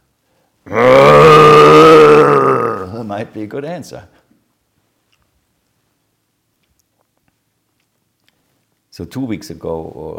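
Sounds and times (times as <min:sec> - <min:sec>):
human voice imitating a water buffalo bellowing: 0:00.7 - 0:03.0
speech: 0:03.2 - 0:04.2, 0:09.0 - 0:10.1.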